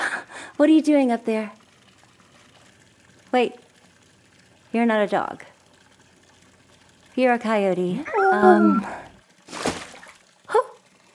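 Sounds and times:
speech: 0.6 - 1.6, 3.3 - 3.6, 4.7 - 5.5, 7.2 - 9.0
short voiced sounds: 8.0 - 9.1
object dropped splashing into a pool: 9.4 - 10.3.

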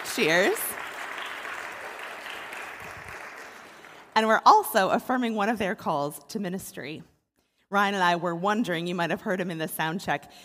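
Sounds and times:
audience applause: 0.0 - 4.2
speech: 0.2 - 0.8, 4.2 - 7.1, 7.7 - 10.4.

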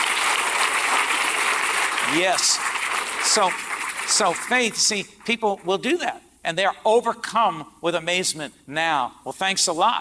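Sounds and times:
audience clapping: 0.0 - 5.7
speech: 2.1 - 9.9.

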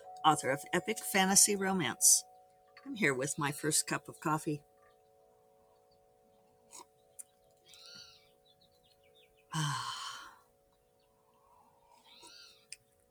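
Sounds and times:
chimes ringing and lingering: 0.0 - 8.5
birds chirping: 0.0 - 13.0
speech: 0.2 - 4.7.

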